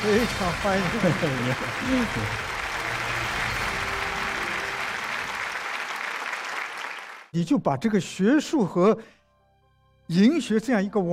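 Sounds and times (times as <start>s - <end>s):
speech: 0.0s - 2.6s, 7.3s - 9.2s, 10.1s - 11.1s
audience applause welcoming a guest professor onto a talk program: 0.0s - 7.3s.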